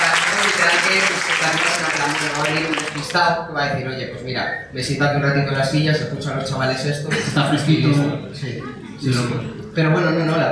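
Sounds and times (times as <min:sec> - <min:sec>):
audience applause: 0:00.0 - 0:03.2
speech: 0:00.9 - 0:10.5.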